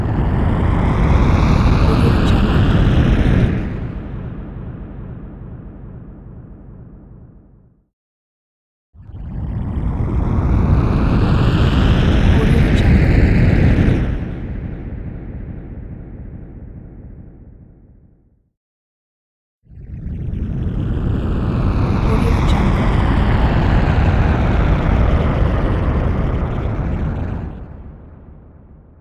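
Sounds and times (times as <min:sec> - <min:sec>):
airplane: 0:00.0 - 0:05.6, 0:09.2 - 0:14.7, 0:20.3 - 0:28.0
spacecraft: 0:00.0 - 0:07.8, 0:09.1 - 0:18.2, 0:19.7 - 0:28.9.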